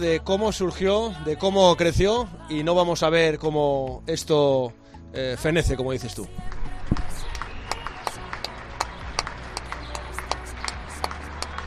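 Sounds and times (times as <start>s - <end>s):
speech: 0.0s - 7.0s
people applauding from balconies: 6.4s - 11.6s.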